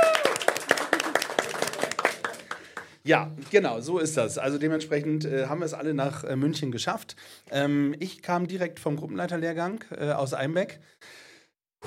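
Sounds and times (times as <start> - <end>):
applause: 0.0 - 3.0
speech: 3.1 - 11.2.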